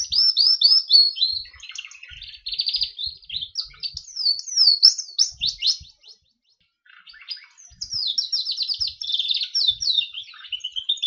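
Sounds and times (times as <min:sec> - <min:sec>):
Berner canary song: 0:00.0 - 0:11.0.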